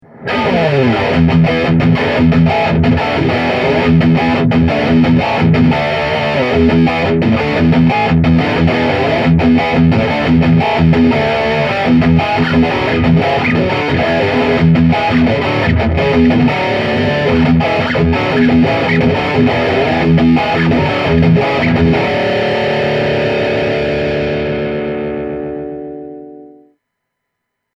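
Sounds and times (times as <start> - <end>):
Zoom G6 guitar effects pedal: 0.0 - 27.6.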